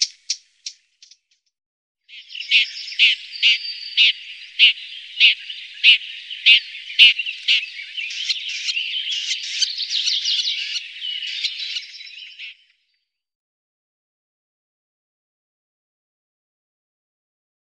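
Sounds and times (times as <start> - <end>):
Tornskata bird: 0.0 - 1.4, 2.1 - 13.2.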